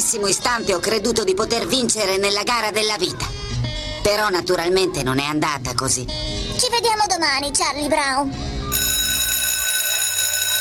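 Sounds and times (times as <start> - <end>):
speech: 0.1 - 8.5
electric school recess bell ringing: 8.7 - 10.5.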